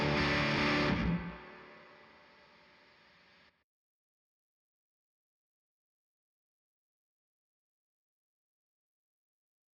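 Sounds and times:
guitars: 0.0s - 2.3s.

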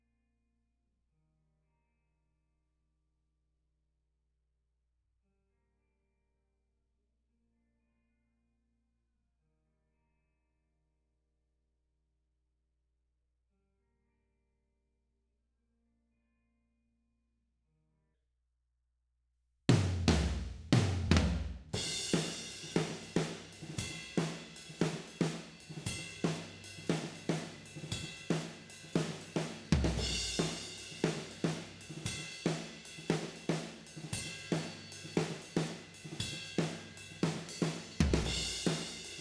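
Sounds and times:
tom drums: 19.7s - 39.1s.

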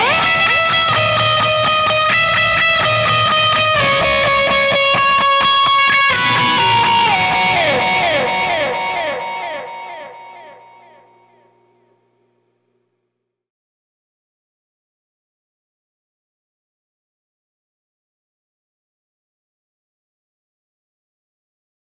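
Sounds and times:
guitar in C: 0.0s - 12.4s.

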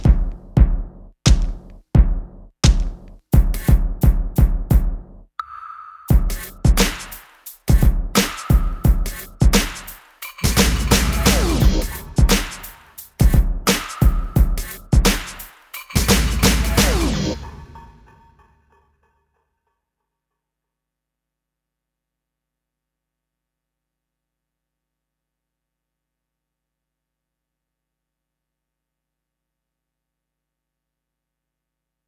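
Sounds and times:
percussion: 0.0s - 18.8s.

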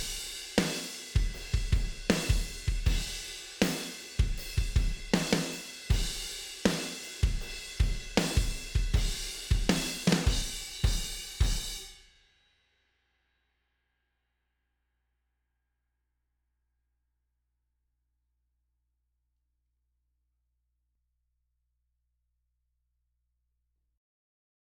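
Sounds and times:
drums: 0.0s - 12.2s.

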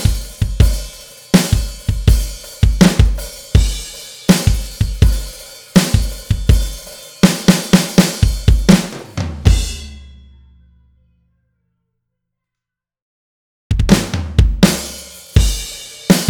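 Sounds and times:
drums: 0.0s - 10.5s, 13.7s - 16.2s.

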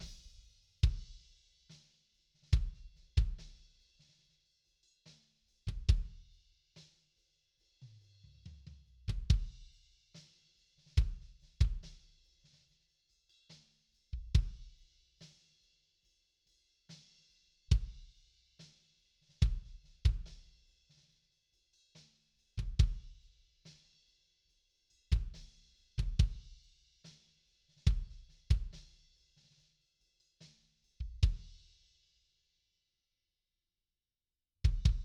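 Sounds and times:
kick drum: 0.0s - 1.3s, 2.5s - 3.6s, 5.7s - 6.2s, 9.1s - 9.7s, 11.0s - 11.9s, 14.2s - 14.8s, 17.7s - 18.1s, 19.4s - 20.5s, 22.6s - 23.2s, 25.1s - 26.6s, 27.8s - 28.9s, 31.0s - 31.6s, 34.6s - 35.0s.

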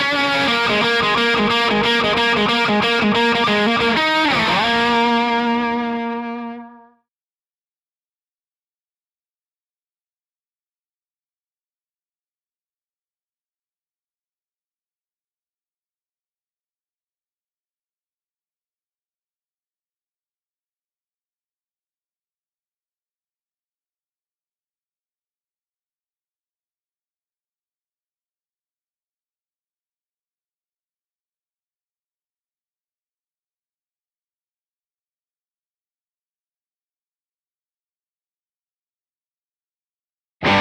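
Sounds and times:
bass guitar: 0.0s - 7.0s.

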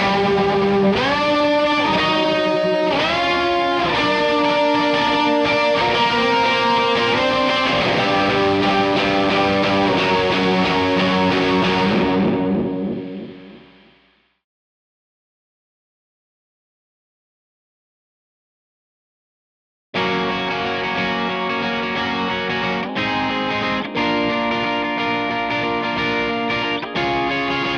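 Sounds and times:
guitar: 0.0s - 14.4s, 20.0s - 27.7s.

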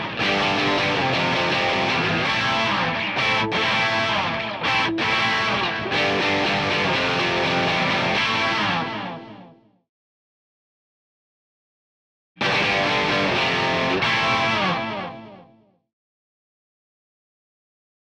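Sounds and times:
guitar in C: 0.0s - 9.8s, 12.4s - 15.8s.

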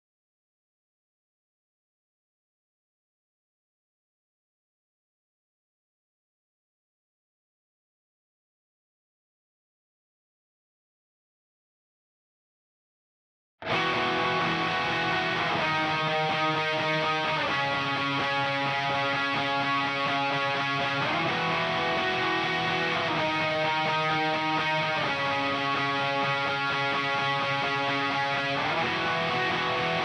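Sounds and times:
bass guitar: 13.6s - 30.0s.

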